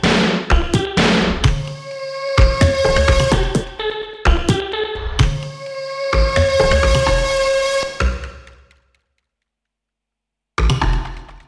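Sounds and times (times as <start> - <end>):
beat: 0.0 - 8.7.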